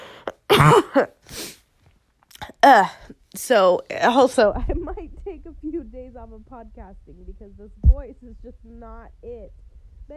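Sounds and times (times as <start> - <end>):
harsh raspy coughing: 0.3 - 1.5
speech: 0.6 - 1.4, 2.6 - 10.1.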